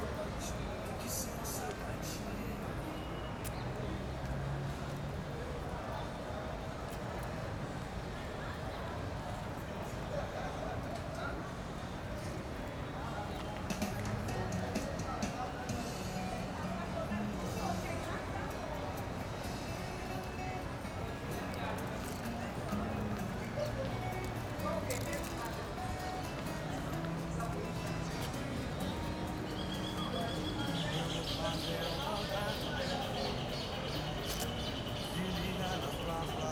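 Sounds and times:
ambience in front of shops in a commercial sector: 0:00.0 - 0:36.4
music playing in front of shops: 0:13.7 - 0:36.4.

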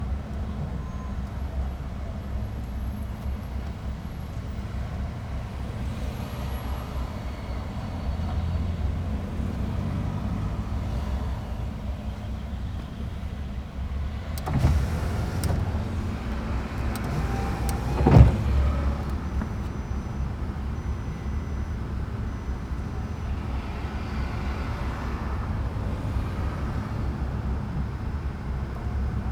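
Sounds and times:
heavy traffic: 0:00.0 - 0:29.3
car window opening and closing at a drive-thru: 0:14.1 - 0:19.7.

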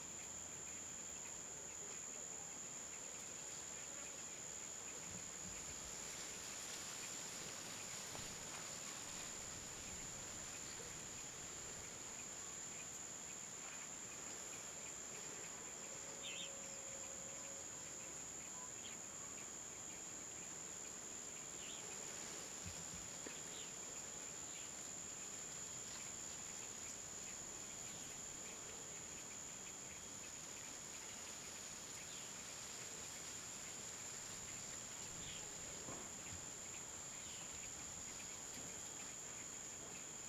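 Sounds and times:
wind: 0:00.0 - 0:40.2
leaves rustling: 0:05.3 - 0:12.1, 0:21.5 - 0:28.4, 0:30.0 - 0:38.6.

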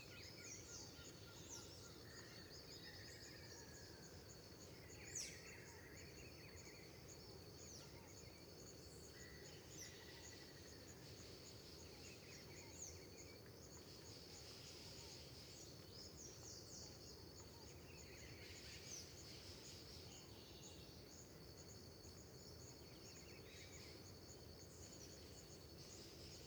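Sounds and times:
crickets chirping: 0:00.2 - 0:26.4.

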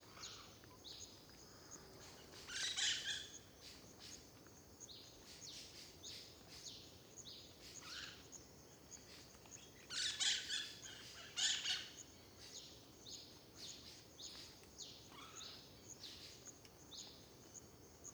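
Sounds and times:
cricket chirping at dawn in a park near a road: 0:00.1 - 0:18.1.

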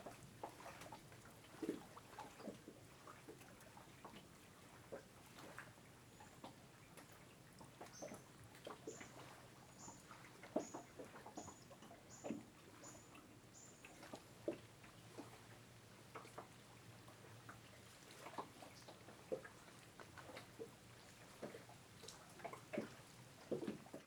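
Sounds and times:
water lapping on the hull of a moored wooden motorboat at a reservoir shore: 0:00.0 - 0:24.0.

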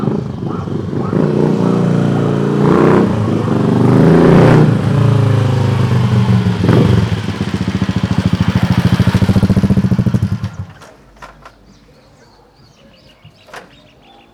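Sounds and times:
dog barking in Alto Paraiso de Goias: 0:00.0 - 0:03.6
motorcycle starting and riding away in Alto Paraiso de Goias: 0:00.0 - 0:11.8.

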